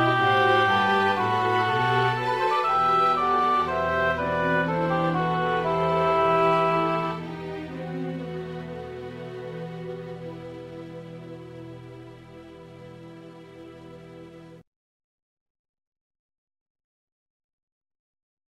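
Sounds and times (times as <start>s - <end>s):
baroque concert for flute and oboe in a minor key: 0.0s - 14.4s.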